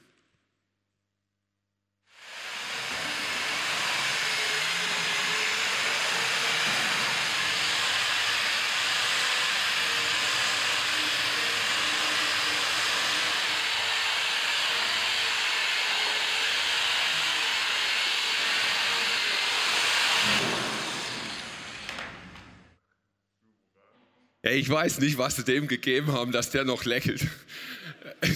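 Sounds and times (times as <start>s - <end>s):
power sander sanding filled wall patches: 2.2s - 22.2s
speech: 24.5s - 28.3s
laughter: 27.3s - 28.3s.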